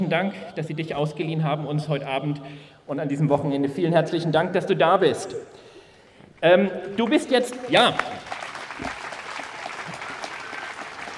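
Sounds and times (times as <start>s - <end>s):
speech: 0.0s - 5.6s, 6.4s - 8.9s
audience clapping: 7.0s - 11.1s.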